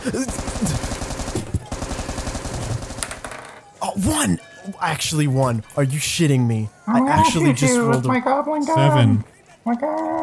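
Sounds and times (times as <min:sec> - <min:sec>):
speech: 0:00.0 - 0:00.9, 0:04.0 - 0:10.2
gunfire from goblins shooting guns in a tabletop roleplaying game: 0:00.0 - 0:03.3.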